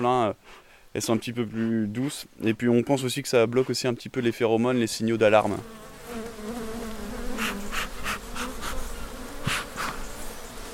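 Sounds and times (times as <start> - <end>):
speech: 0.0 - 5.8
honeybees buzzing in an opened hive: 5.0 - 10.7.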